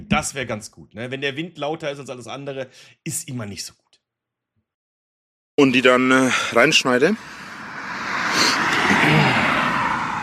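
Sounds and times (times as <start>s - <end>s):
speech: 0.1s - 3.8s, 5.6s - 7.5s
cars driving past on road: 7.2s - 10.2s.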